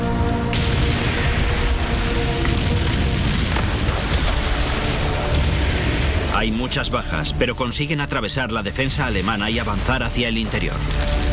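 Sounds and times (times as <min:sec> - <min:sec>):
gunfire from the D-Day landing at Juno Beach, Normandy: 0:00.5 - 0:06.5
explosions from the D-Day landing at Juno Beach, Normandy: 0:00.5 - 0:07.7, 0:08.8 - 0:11.3
speech: 0:06.4 - 0:11.3.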